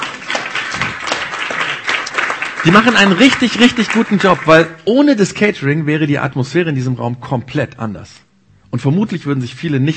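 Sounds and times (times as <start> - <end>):
audience clapping: 0.0 - 4.8
speech: 2.6 - 9.9.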